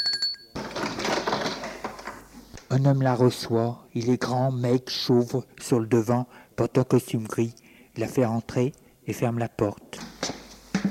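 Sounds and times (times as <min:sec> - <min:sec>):
doorbell ringing at an apartment door: 0:00.0 - 0:00.6
speech: 0:02.8 - 0:09.8.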